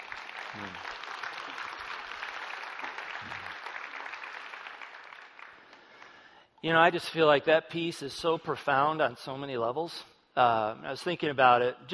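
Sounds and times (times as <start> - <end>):
crowd applauding: 0.0 - 6.3
speech: 6.6 - 11.9.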